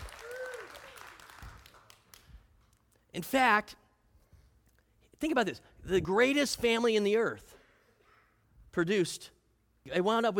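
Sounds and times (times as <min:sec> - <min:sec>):
audience applause: 0:00.0 - 0:02.2
speech: 0:03.1 - 0:03.8, 0:05.2 - 0:07.5, 0:08.8 - 0:10.3.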